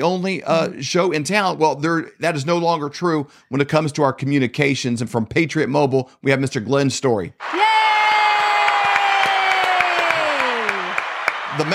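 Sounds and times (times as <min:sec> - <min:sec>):
speech: 0:00.0 - 0:08.0, 0:11.6 - 0:11.7
recorded crowd cheering and applauding: 0:07.4 - 0:11.7.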